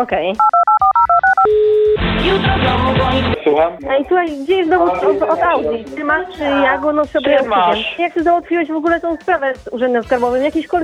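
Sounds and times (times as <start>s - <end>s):
speech: 0.0s - 0.6s, 2.2s - 10.8s
telephone number being dialed: 0.4s - 1.8s.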